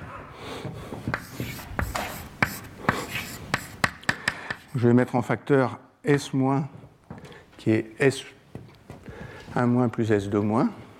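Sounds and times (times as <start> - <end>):
handwriting an equation: 1.1 - 4.0
speech: 4.8 - 6.8, 7.6 - 8.4, 9.6 - 10.8.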